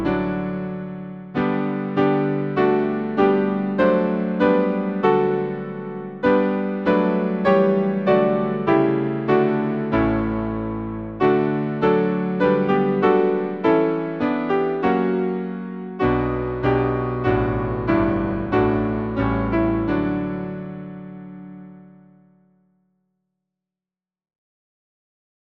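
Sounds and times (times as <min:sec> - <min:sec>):
hymn played on piano: 0:00.0 - 0:22.3.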